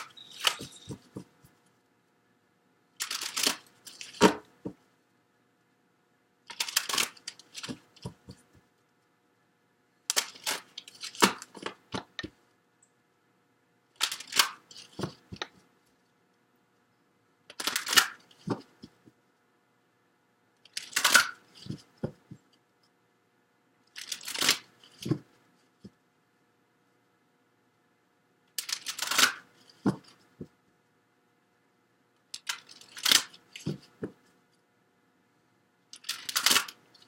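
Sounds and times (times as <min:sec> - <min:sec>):
oracle cards from Life Purpose and Money decks shuffled and drawn: 0:00.0 - 0:01.6, 0:03.0 - 0:04.8, 0:06.5 - 0:08.6, 0:10.1 - 0:12.4, 0:14.0 - 0:15.6, 0:17.5 - 0:19.0, 0:20.7 - 0:22.3, 0:24.0 - 0:25.3, 0:28.6 - 0:30.2, 0:32.4 - 0:34.2, 0:36.0 - 0:37.0.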